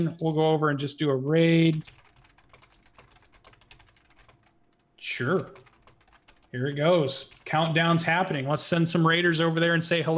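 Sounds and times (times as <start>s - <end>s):
speech: 0.0s - 2.0s, 5.0s - 5.6s, 6.5s - 10.1s
rapid typing on a computer keyboard: 1.7s - 8.4s.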